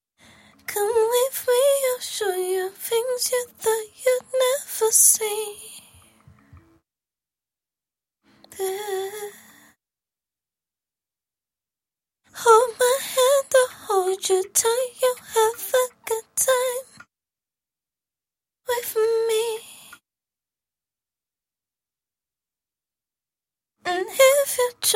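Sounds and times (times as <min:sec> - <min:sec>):
woman singing pop a cappella: 0:00.6 - 0:06.1, 0:08.5 - 0:09.5, 0:12.3 - 0:17.0, 0:18.7 - 0:20.0, 0:23.9 - 0:24.9.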